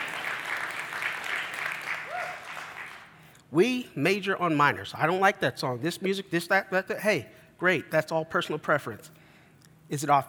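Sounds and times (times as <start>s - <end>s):
applause: 0.0s - 3.2s
speech: 3.5s - 9.2s, 9.9s - 10.2s.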